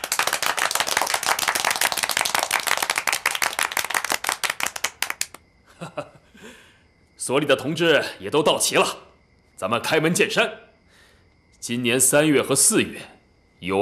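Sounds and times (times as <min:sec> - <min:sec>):
applause from a meeting audience: 0:00.0 - 0:05.4
speech: 0:05.8 - 0:06.2, 0:07.2 - 0:09.0, 0:09.6 - 0:10.6, 0:11.6 - 0:13.8.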